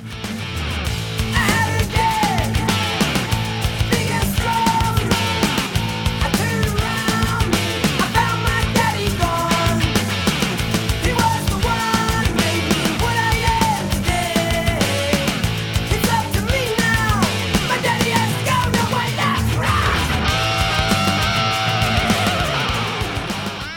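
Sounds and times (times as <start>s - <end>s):
distorted guitars: 0.0s - 23.7s
pounding steady rock drums: 0.9s - 23.7s
strained shouting male vocal: 1.3s - 10.0s, 11.0s - 22.9s.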